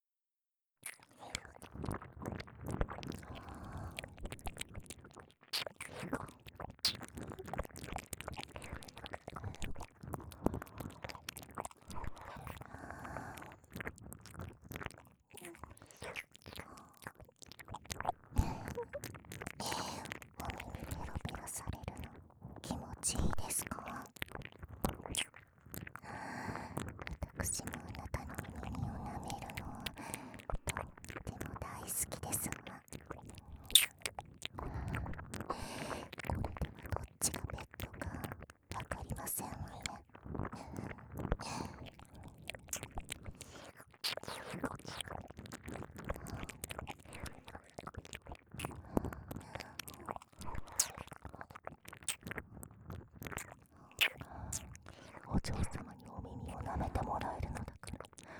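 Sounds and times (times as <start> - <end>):
whispering: 0.9 - 2.5, 5.6 - 6.3, 7.2 - 7.7, 10.6 - 13.6, 15.3 - 17.2, 18.0 - 24.2, 26.4 - 33.9, 34.9 - 42.0, 43.5 - 45.2, 48.7 - 51.6, 53.4 - 58.2
ear licking sounds: 0.9 - 22.2, 23.2 - 58.3.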